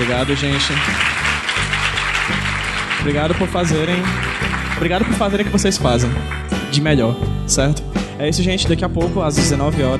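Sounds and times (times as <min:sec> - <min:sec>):
speech: 0:00.0 - 0:01.3, 0:02.3 - 0:09.9
audience applause: 0:00.0 - 0:06.6.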